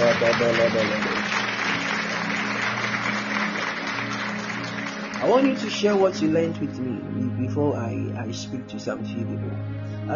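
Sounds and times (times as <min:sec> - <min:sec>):
audience clapping: 0:00.0 - 0:06.6
speech: 0:00.4 - 0:01.2, 0:05.2 - 0:10.1.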